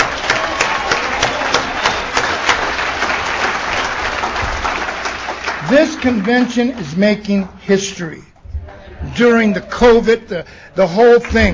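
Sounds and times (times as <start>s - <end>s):
audience applause: 0.0s - 7.6s
speech: 5.7s - 8.3s, 9.2s - 11.5s.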